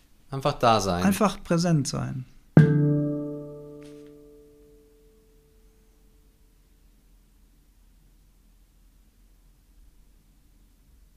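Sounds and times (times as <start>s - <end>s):
speech: 0.3s - 2.4s
gong: 2.6s - 5.2s.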